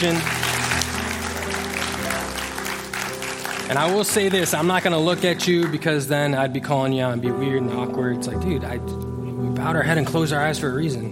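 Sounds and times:
speech: 0.0s - 0.4s, 3.7s - 11.1s
audience applause: 0.0s - 6.3s
sustained low musical tones: 0.0s - 11.1s.

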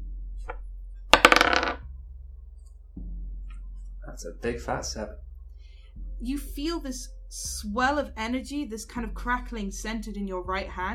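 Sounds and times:
dice clattering onto a hard surface: 1.2s - 1.8s
speech: 4.2s - 5.3s, 6.2s - 10.9s.

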